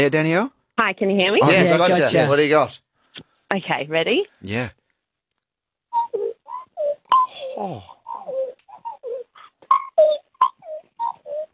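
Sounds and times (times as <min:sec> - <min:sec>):
speech: 0:00.0 - 0:02.8, 0:03.5 - 0:04.8, 0:07.3 - 0:08.3
person imitating a magpie call: 0:06.0 - 0:11.5.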